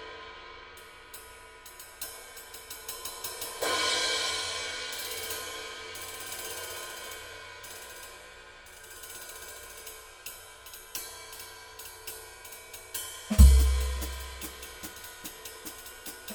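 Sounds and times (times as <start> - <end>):
Zildjian K Custom 18 ride cymbal: 1.8 - 16.3.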